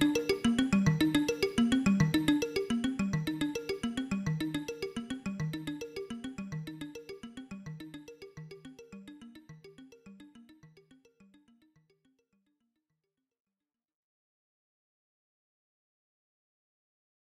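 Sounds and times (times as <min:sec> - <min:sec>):
stacked polyphonic synths: 0:00.0 - 0:09.8.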